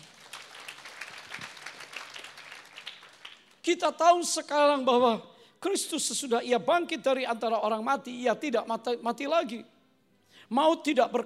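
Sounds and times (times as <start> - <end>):
crowd applause: 0.0 - 3.6
speech: 3.6 - 9.7, 10.5 - 11.2.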